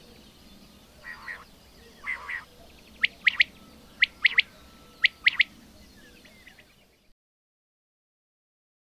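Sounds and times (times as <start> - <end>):
bird chirps: 0.0 - 7.2.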